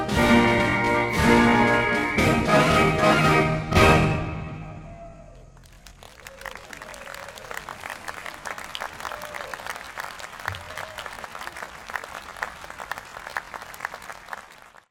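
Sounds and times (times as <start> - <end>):
circus march music: 0.0 - 4.9.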